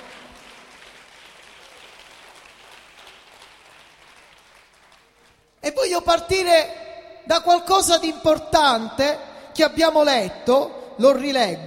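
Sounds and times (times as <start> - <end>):
audience applause: 0.0 - 5.6
speech: 5.7 - 11.6.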